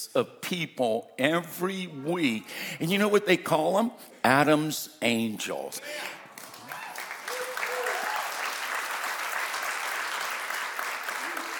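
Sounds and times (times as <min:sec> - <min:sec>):
speech: 0:00.0 - 0:06.2
audience applause: 0:06.0 - 0:11.5.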